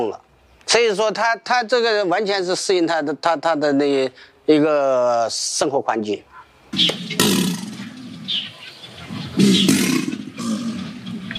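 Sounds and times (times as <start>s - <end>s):
speech: 0.0s - 7.4s
Chinese alligator bellowing: 6.3s - 11.3s.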